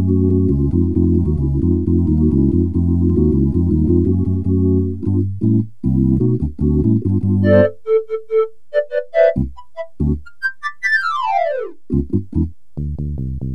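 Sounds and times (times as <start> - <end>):
keyboard: 0.0 - 13.5.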